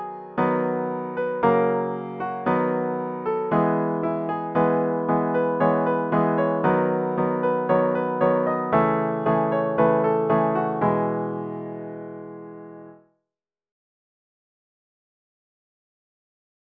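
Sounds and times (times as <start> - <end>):
piano: 0.0 - 13.0.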